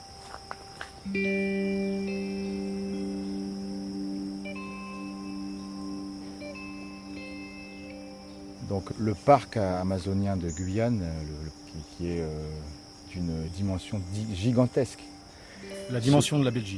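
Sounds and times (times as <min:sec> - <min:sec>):
forest cicadas: 0:00.0 - 0:16.7
speech: 0:01.0 - 0:01.5, 0:08.7 - 0:16.7.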